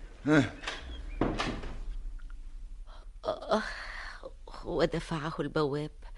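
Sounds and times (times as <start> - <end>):
speech: 0.2 - 0.7, 3.5 - 3.8, 4.6 - 6.1
door being shut: 0.4 - 1.9.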